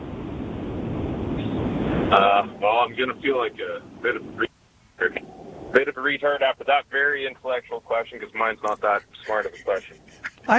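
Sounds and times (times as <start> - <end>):
wind in Canada buffeting a phone microphone: 0.0 - 6.4
speech: 2.1 - 10.5
laughter: 8.5 - 10.5.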